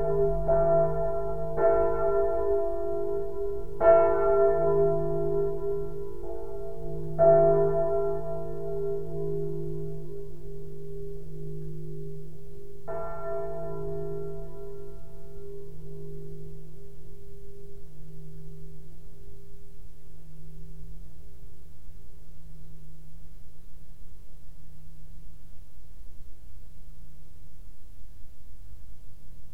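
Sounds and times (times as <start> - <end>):
church bell of the Herford minster ringing: 0.0 - 18.8.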